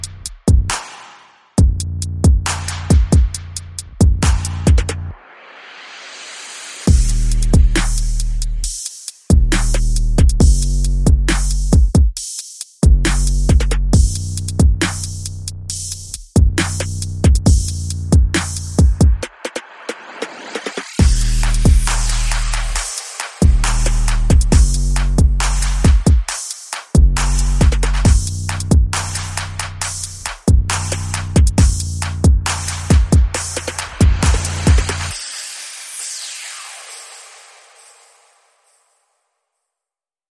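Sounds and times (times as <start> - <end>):
bass: 0.0 - 0.8, 1.6 - 5.2, 6.9 - 8.7, 9.3 - 12.0, 12.8 - 19.3, 21.0 - 26.1, 27.0 - 35.2
drums: 0.0 - 37.2
sound effects: 19.2 - 24.7, 32.6 - 39.2.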